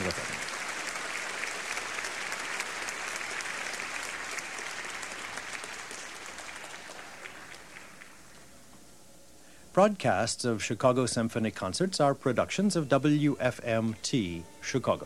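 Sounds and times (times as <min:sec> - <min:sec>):
large concert audience applause: 0:00.0 - 0:08.4
speech: 0:09.8 - 0:15.0.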